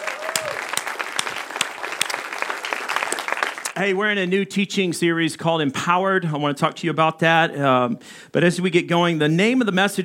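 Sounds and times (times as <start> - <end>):
audience applauding: 0.0 - 3.8
speech: 3.8 - 10.0.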